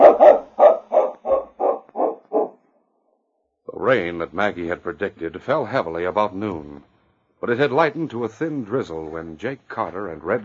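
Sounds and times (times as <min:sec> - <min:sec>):
tracking dog barking: 0:00.0 - 0:02.6
speech: 0:03.9 - 0:10.4.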